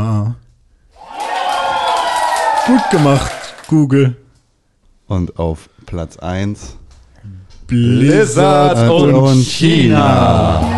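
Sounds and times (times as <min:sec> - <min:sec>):
crowd cheering sound effect: 0:01.0 - 0:03.7, 0:09.6 - 0:10.7
speech: 0:02.7 - 0:04.2, 0:05.1 - 0:10.7.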